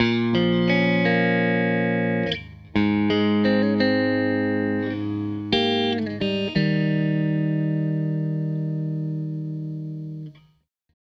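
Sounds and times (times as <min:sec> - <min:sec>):
Telecaster electric guitar loop: 0:00.0 - 0:10.4.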